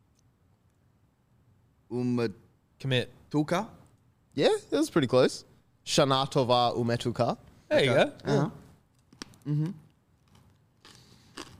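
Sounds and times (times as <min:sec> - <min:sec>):
speech: 0:01.9 - 0:03.8, 0:04.4 - 0:08.6, 0:09.5 - 0:09.8
person crunching on dried apple: 0:09.0 - 0:11.5.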